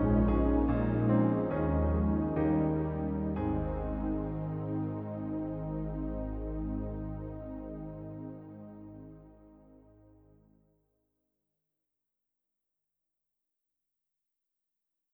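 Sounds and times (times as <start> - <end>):
synth pad on Yamaha NP-15 WH digital piano: 0.0 - 10.4.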